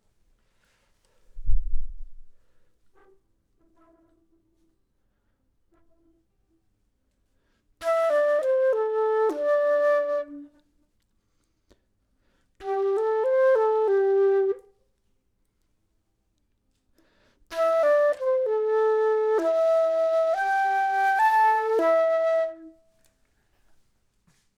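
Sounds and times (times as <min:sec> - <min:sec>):
flute: 0:02.6 - 0:04.8, 0:07.8 - 0:10.9, 0:12.6 - 0:14.8, 0:17.5 - 0:23.2.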